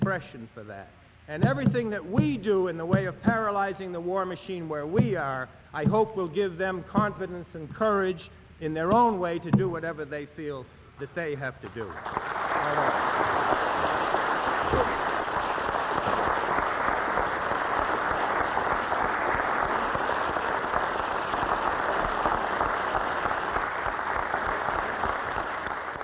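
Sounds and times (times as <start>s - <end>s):
speech: 0.1s - 13.6s
audience applause after a speech: 11.7s - 26.0s.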